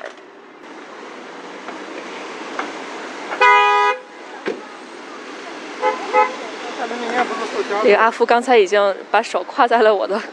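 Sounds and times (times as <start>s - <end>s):
road traffic hum: 0.0s - 10.3s
car horn honking in traffic: 3.3s - 4.7s, 5.7s - 7.4s
speech: 6.9s - 10.3s.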